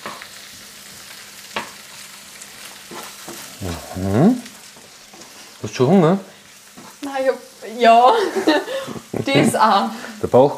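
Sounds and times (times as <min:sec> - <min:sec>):
mushrooms and rice frying in a pan: 0:00.0 - 0:10.5
speech: 0:03.6 - 0:04.5, 0:05.7 - 0:06.3, 0:07.2 - 0:10.5.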